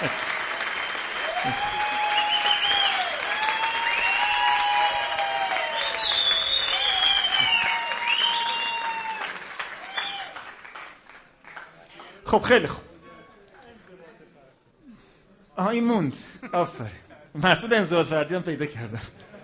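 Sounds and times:
audience applause: 0:00.0 - 0:12.2
whistles and cheers: 0:00.4 - 0:10.6
speech: 0:01.4 - 0:01.8, 0:12.3 - 0:12.9, 0:15.7 - 0:19.2.

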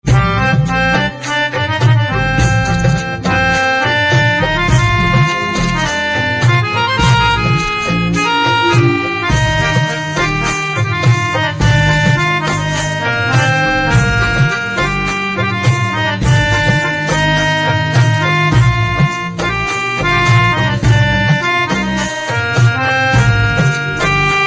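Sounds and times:
harmonium instrumental ringtone: 0:00.0 - 0:24.4.

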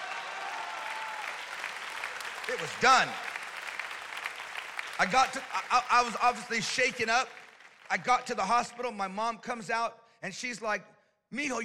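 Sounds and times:
audience clapping: 0:00.0 - 0:08.8
speech: 0:02.5 - 0:03.3, 0:05.0 - 0:11.6.

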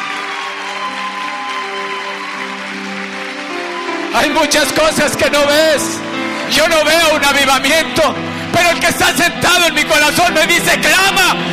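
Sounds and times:
audience applause: 0:00.0 - 0:07.9
speech: 0:04.2 - 0:11.5.

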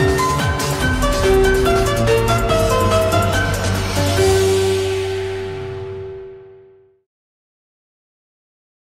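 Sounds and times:
piano: 0:00.0 - 0:07.1.

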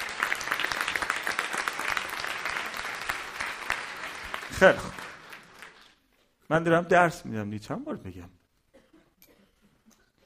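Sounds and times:
group applause: 0:00.0 - 0:06.0
speech: 0:04.6 - 0:05.0, 0:06.5 - 0:08.4.

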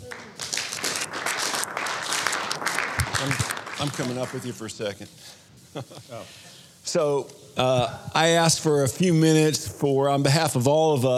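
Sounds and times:
audience clapping to welcome a speaker: 0:00.0 - 0:04.9
speech: 0:03.2 - 0:11.1.

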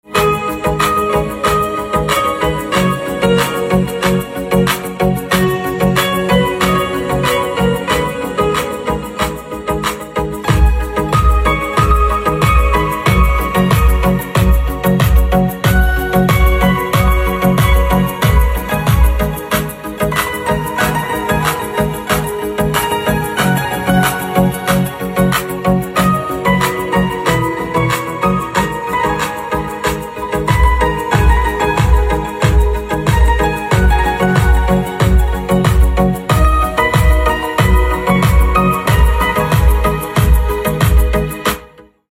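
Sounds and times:
piano: 0:00.0 - 0:42.1.

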